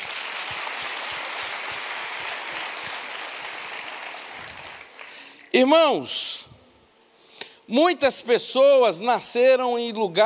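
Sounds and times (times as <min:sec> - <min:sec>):
audience applause: 0:00.0 - 0:05.5
speech: 0:05.6 - 0:06.4, 0:07.7 - 0:10.2.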